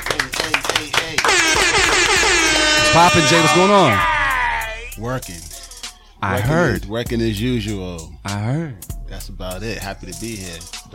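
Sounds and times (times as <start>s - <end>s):
audience clapping: 0.0s - 2.5s
audience cheering: 1.2s - 4.9s
speech: 3.0s - 4.1s, 5.0s - 5.6s, 6.2s - 10.9s.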